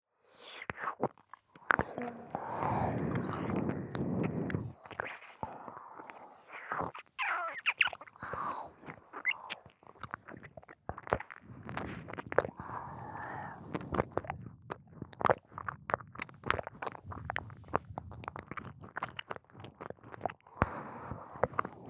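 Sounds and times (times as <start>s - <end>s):
ear licking: 0.7s - 21.8s.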